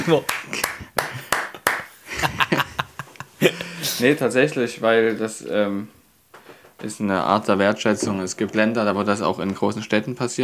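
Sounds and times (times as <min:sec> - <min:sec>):
speech: 0:00.0 - 0:00.6, 0:03.4 - 0:06.0, 0:06.8 - 0:10.4
single person clapping hands: 0:00.0 - 0:02.6
laughter: 0:00.4 - 0:04.1.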